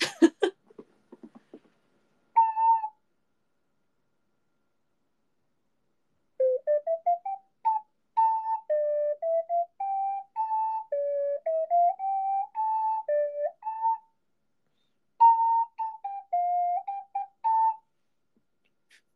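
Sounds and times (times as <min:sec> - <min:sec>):
ocarina playing a slow mournful folk song: 0:02.3 - 0:03.0, 0:06.4 - 0:14.2, 0:14.8 - 0:17.9.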